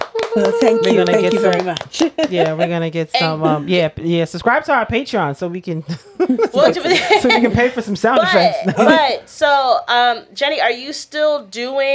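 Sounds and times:
clapping: 0.0 - 2.7
laughter: 0.2 - 2.9, 5.9 - 9.1
speech: 0.4 - 11.9.

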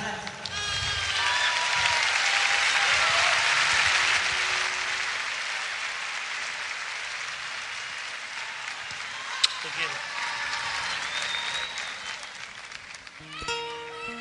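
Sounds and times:
audience applause: 0.2 - 13.9.

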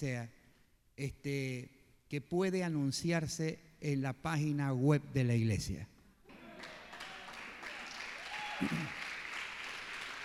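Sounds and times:
speech: 0.0 - 0.4, 1.0 - 5.9, 8.6 - 9.0
audience applause: 6.4 - 10.2.

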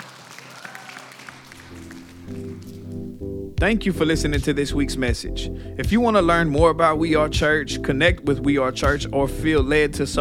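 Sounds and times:
church congregation clapping: 0.0 - 3.1
speech: 2.3 - 10.1.

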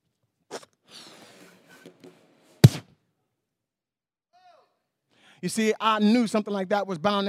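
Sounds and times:
balloon bursting with a loud sharp pop: 2.6 - 3.0
speech: 5.4 - 7.2.

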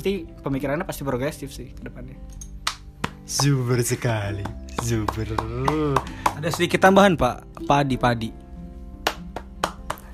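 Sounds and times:
speech: 0.0 - 2.4, 3.3 - 8.4
hand clapping: 2.6 - 3.7, 4.4 - 7.0, 9.0 - 10.1.

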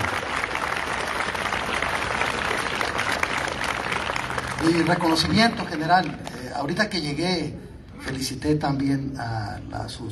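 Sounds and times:
audience applause: 0.0 - 6.3
speech: 4.6 - 10.0.

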